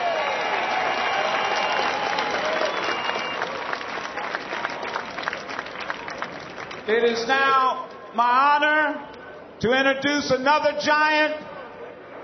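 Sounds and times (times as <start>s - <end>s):
audience applause: 0.0s - 6.9s
speech: 6.9s - 11.4s.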